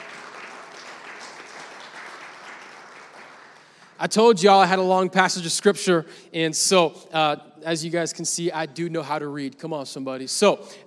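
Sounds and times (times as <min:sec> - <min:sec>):
audience clapping hands: 0:00.0 - 0:04.3
speech: 0:04.0 - 0:10.8.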